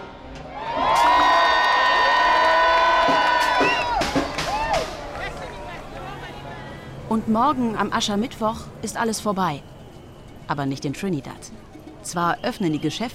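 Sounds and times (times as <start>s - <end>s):
enthusiastic crowd cheering and applause: 0.3s - 6.5s
speech: 7.3s - 9.7s, 10.5s - 13.1s.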